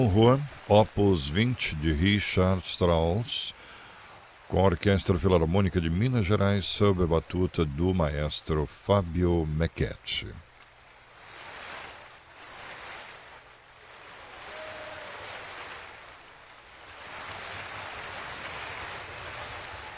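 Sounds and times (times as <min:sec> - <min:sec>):
speech: 0:00.0 - 0:03.7, 0:04.5 - 0:10.4
audience standing and applauding: 0:14.0 - 0:19.9.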